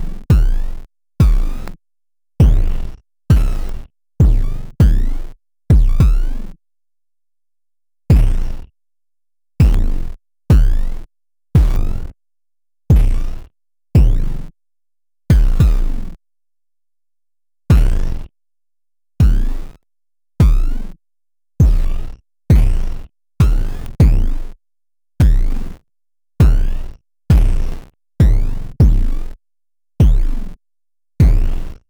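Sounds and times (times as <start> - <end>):
bass drum rhythms: 0.3 - 0.6, 1.2 - 1.6, 2.4 - 6.3, 8.1 - 8.4, 9.6 - 9.9, 10.5 - 10.9, 11.6 - 11.9, 12.9 - 13.3, 14.0 - 14.3, 15.3 - 16.0, 17.7 - 18.1, 19.2 - 19.6, 20.4 - 20.8, 21.6 - 24.4, 25.2 - 25.6, 26.4 - 29.2, 30.0 - 30.4, 31.2 - 31.7.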